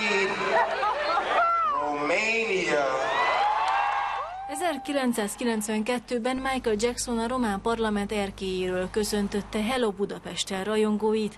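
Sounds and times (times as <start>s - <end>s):
laughter: 0.0s - 2.4s
shouts and whoops: 2.8s - 5.1s
speech: 4.8s - 11.3s.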